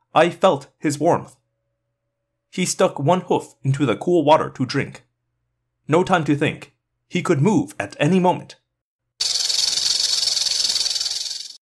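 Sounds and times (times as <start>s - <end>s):
speech: 0.2s - 1.4s, 2.5s - 5.1s, 5.9s - 8.6s
rattlesnake's tail rattling a warning: 9.2s - 11.6s.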